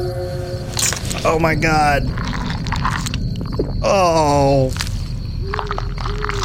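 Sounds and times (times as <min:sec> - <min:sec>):
short wavering groan: 0:00.0 - 0:02.2
video game character devouring a corpse, wet crunching chewing: 0:00.8 - 0:06.4
speech: 0:01.2 - 0:02.4, 0:03.8 - 0:04.9.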